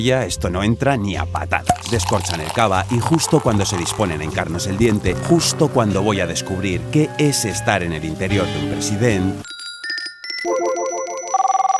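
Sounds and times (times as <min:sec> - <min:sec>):
speech: 0:00.0 - 0:09.5
telephone ringtone of melodic electronic beeps and pulsing tones: 0:09.4 - 0:11.7.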